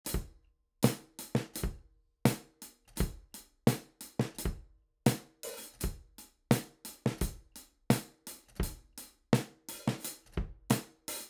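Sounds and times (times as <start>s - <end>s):
drum break: 0.8s - 2.4s, 3.7s - 8.8s, 9.4s - 11.2s.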